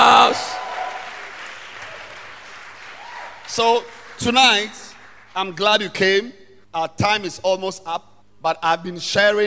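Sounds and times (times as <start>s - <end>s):
audience applause: 0.2s - 5.4s
speech: 4.2s - 4.8s, 5.4s - 9.4s.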